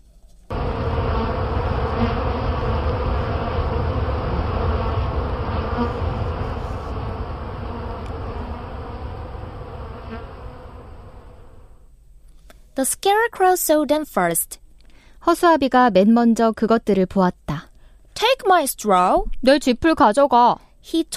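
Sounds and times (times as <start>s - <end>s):
swarm of bees buzzing and flying off: 0.5s - 11.8s
speech: 12.8s - 14.6s, 15.2s - 21.1s.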